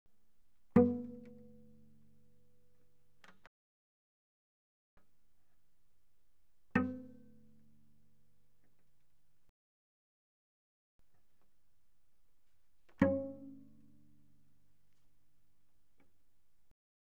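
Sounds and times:
cello pizzicato mezzo forte on the C string: 0.2s - 2.4s, 5.0s - 9.5s, 11.0s - 16.7s.

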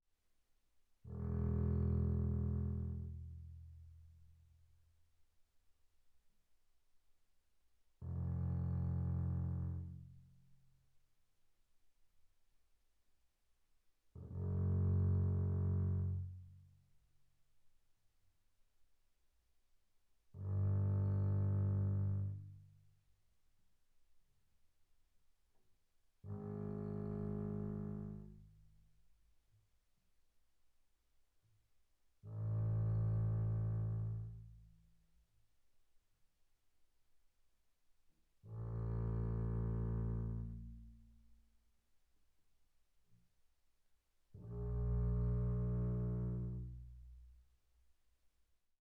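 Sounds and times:
double bass bowed pianissimo on the E string: 1.1s - 3.8s, 8.0s - 10.2s, 14.2s - 16.6s, 20.4s - 22.7s, 26.3s - 28.6s, 32.3s - 34.7s, 38.5s - 41.2s, 44.4s - 47.4s.

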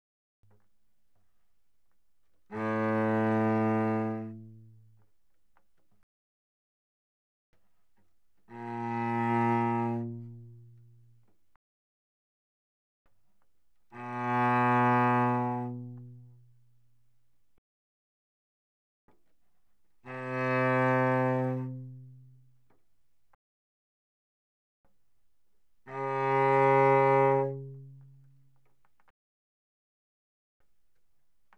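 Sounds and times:
cello played arco mezzo forte on the C string: 2.4s - 5.1s, 8.4s - 11.4s, 13.9s - 17.0s, 20.0s - 22.6s, 25.8s - 28.6s.

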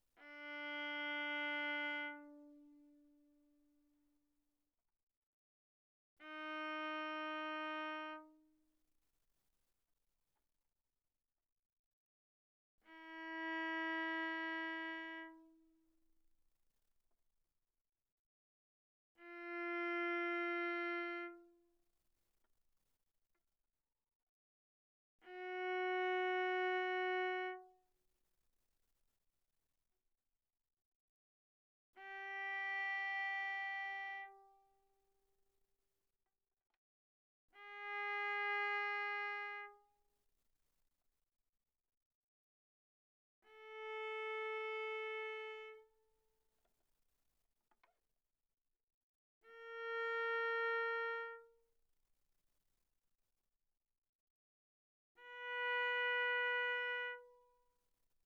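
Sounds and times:
viola bowed on the D string: 0.2s - 3.5s, 6.2s - 8.6s, 12.8s - 15.8s, 19.2s - 21.6s, 25.2s - 27.8s, 32.0s - 35.0s, 37.6s - 39.9s, 43.4s - 45.9s, 49.4s - 51.7s, 55.2s - 57.6s.

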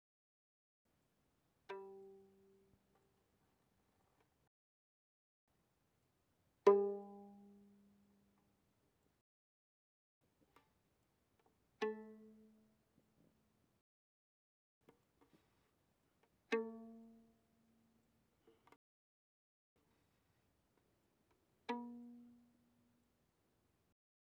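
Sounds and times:
violin pizzicato pianissimo notes on the G string, G3 and B3: 1.7s - 2.8s, 6.7s - 7.9s, 16.5s - 17.4s, 21.7s - 22.7s.

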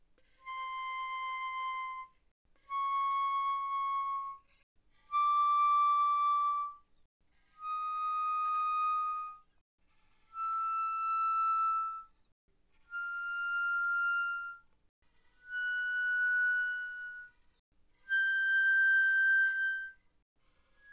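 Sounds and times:
very soft flute notes without vibrato: 0.4s - 4.4s, 5.1s - 6.8s, 7.6s - 9.5s, 10.3s - 12.1s, 12.9s - 14.7s, 15.4s - 17.3s, 18.0s - 20.0s.

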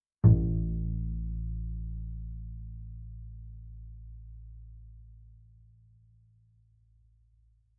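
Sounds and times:
double bass pizzicato fortissimo on A2: 0.2s - 5.6s.

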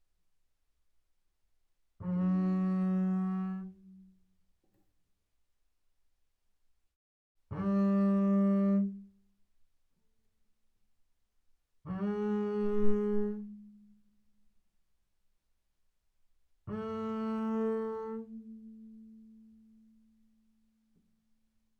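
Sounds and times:
double bass bowed fortissimo on the A string: 2.0s - 4.0s, 7.6s - 9.1s, 11.9s - 13.9s, 16.7s - 20.0s.

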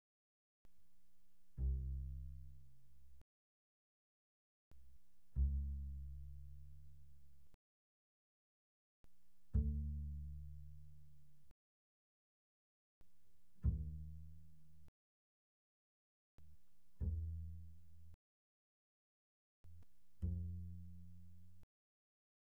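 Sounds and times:
very soft double bass pizzicato notes on the A string: 1.6s - 3.2s, 5.3s - 7.5s, 9.5s - 11.5s, 13.6s - 14.9s, 16.4s - 18.2s, 19.7s - 21.6s.

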